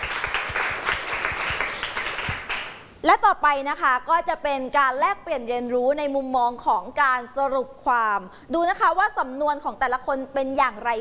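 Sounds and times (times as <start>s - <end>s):
classroom audience applause: 0.0s - 2.8s
speech: 3.0s - 10.9s.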